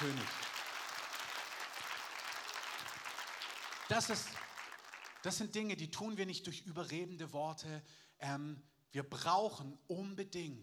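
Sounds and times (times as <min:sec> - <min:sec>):
audience applause: 0:00.0 - 0:05.3
speech: 0:03.9 - 0:04.5, 0:05.2 - 0:10.6.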